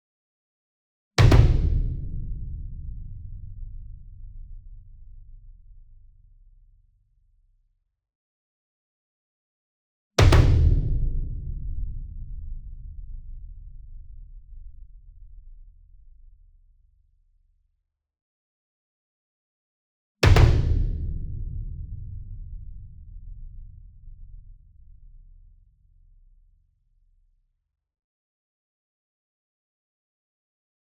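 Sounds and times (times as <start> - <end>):
40 inch concert bass drum hit with double hard beater: 1.2 - 5.7, 10.2 - 15.6, 20.2 - 24.5.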